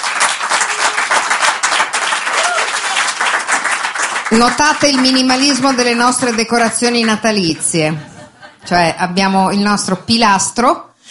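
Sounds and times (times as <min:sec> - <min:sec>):
applause: 0:00.0 - 0:07.3
speech: 0:04.3 - 0:08.1, 0:08.7 - 0:10.9
laughter: 0:07.4 - 0:09.0.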